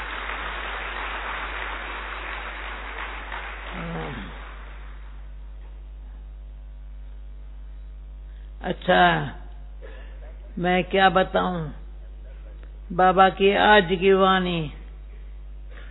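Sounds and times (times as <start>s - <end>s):
audience clapping: 0.0s - 5.3s
low electrical hum: 0.0s - 15.8s
speech: 8.6s - 9.4s, 10.6s - 11.8s, 12.9s - 14.8s.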